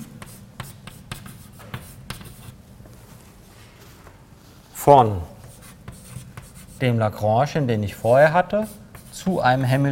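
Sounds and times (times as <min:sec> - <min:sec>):
writing on a board: 0:00.0 - 0:02.6, 0:05.4 - 0:06.8, 0:08.6 - 0:09.8
speech: 0:04.8 - 0:05.3, 0:06.8 - 0:09.8.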